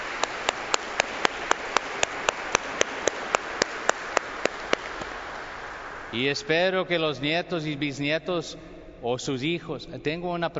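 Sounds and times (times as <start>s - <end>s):
audience applause: 0.0s - 6.2s
speech: 6.1s - 10.5s.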